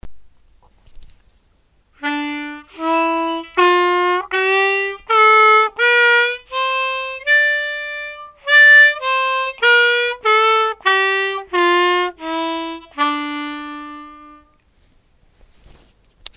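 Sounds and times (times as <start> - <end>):
harmonica: 2.0 - 14.6.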